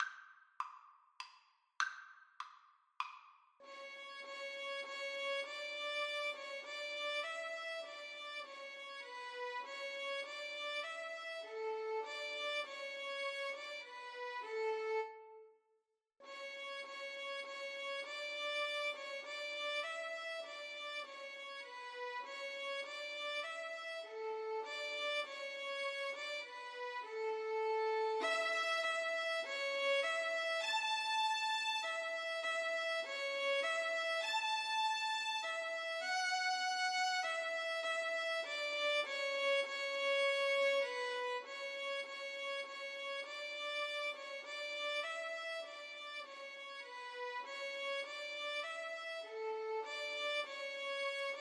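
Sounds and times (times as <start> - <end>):
violin duet: 3.7 - 15.2, 16.3 - 51.3.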